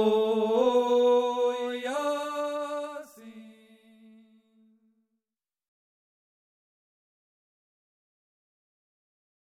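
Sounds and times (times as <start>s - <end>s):
tenor singing: 0.0s - 4.2s.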